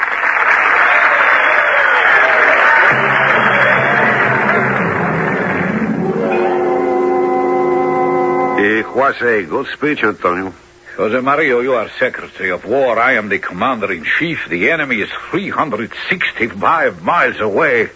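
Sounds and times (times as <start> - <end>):
audience applause: 0.0 - 8.8
speech: 9.0 - 17.9.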